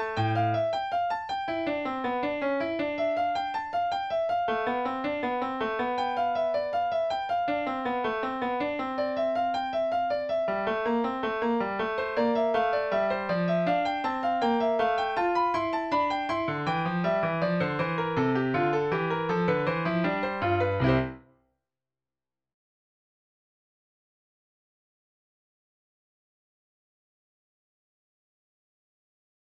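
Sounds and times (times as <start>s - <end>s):
piano invention in D: 0.0s - 21.2s.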